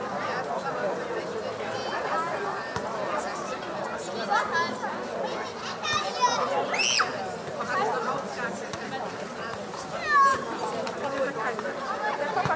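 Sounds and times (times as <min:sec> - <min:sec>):
children chattering at a playground in Berlin: 0:00.0 - 0:12.5
children shouting and squealing: 0:04.3 - 0:07.3, 0:10.0 - 0:10.6.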